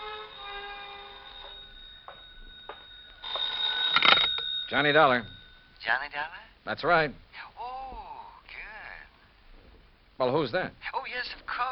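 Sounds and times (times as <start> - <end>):
telephone ringing: 0.0 - 6.5
speech: 4.7 - 7.2, 10.2 - 11.6.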